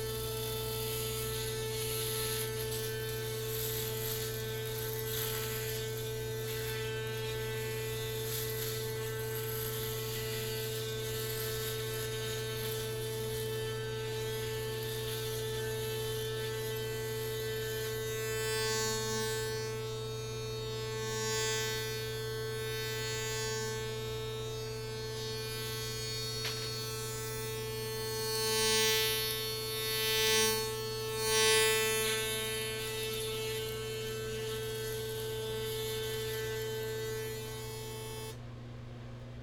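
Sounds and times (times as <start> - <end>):
electric razor buzzing, binaural: 0.0 - 38.4.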